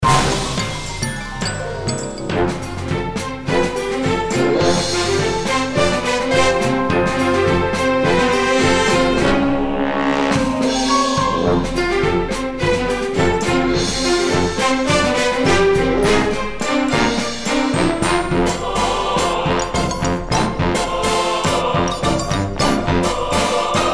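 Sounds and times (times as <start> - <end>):
opening music: 0.0 - 23.9.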